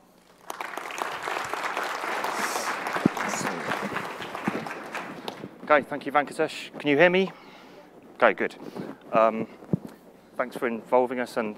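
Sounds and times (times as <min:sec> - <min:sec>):
audience applause welcoming a speaker onto a stage: 0:00.0 - 0:05.5
speech: 0:05.7 - 0:07.5, 0:08.2 - 0:09.6, 0:10.4 - 0:11.5.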